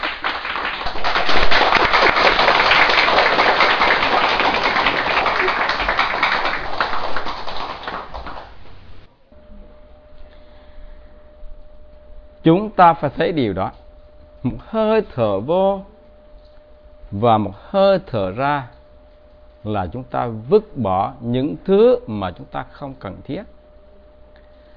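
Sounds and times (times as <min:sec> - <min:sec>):
audience applause: 0:00.0 - 0:08.9
speech: 0:12.4 - 0:13.8, 0:14.4 - 0:15.9, 0:17.1 - 0:18.8, 0:19.6 - 0:23.6.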